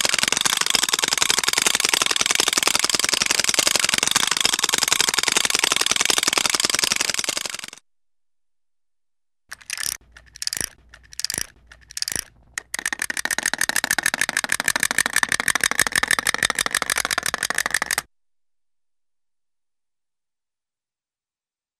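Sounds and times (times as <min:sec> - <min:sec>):
small wind-up chattering teeth toy motor winding up: 0:00.0 - 0:07.8, 0:09.5 - 0:18.1.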